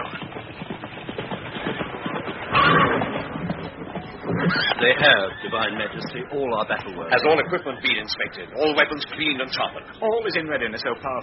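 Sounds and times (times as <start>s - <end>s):
hoofbeats of horses drawing the Pharaoh's golden chariot: 0.0s - 11.2s
horse neighing: 2.4s - 9.0s
speech: 4.5s - 11.2s.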